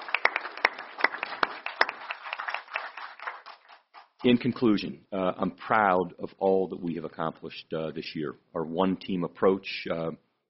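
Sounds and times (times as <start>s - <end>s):
crowd applause: 0.0s - 4.0s
speech: 4.2s - 10.2s.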